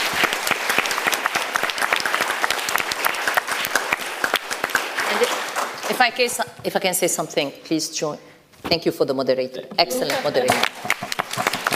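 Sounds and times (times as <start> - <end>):
audience applause: 0.0 - 6.3, 10.0 - 11.7
speech: 6.0 - 10.9.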